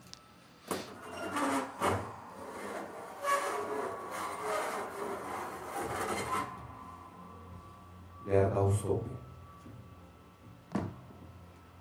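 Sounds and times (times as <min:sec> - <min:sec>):
heavy door creaking and grinding open under pressure: 0:00.9 - 0:07.0
speech: 0:08.3 - 0:09.2.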